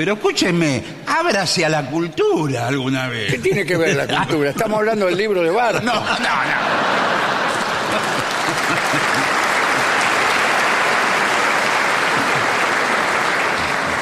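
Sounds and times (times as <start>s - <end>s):
speech: 0.0s - 7.1s, 7.9s - 9.2s
laughter: 3.3s - 14.0s
audience clapping: 6.6s - 14.0s.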